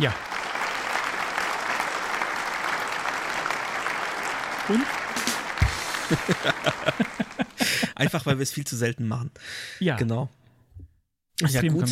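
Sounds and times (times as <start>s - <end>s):
speech: 0.0s - 0.2s, 4.7s - 5.0s, 6.1s - 11.9s
applause from a group: 0.0s - 8.0s
laughter: 4.7s - 8.3s.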